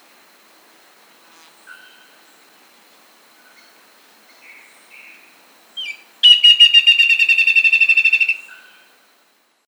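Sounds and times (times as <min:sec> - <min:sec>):
bird whistle and rattling trill: 0:05.8 - 0:08.8.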